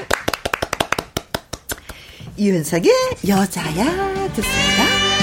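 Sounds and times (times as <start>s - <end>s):
hand clapping: 0.0s - 2.1s
speech: 2.4s - 5.1s.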